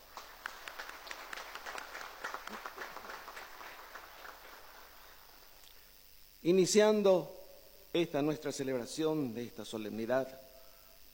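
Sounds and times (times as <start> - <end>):
audience applause: 0.0 - 5.4
speech: 6.4 - 10.4.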